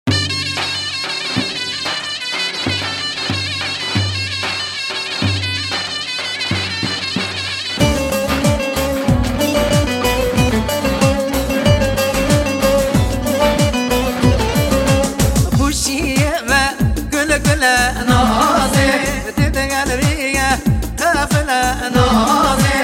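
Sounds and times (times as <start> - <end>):
Kurdish halay folk dance music: 0.0 - 22.8.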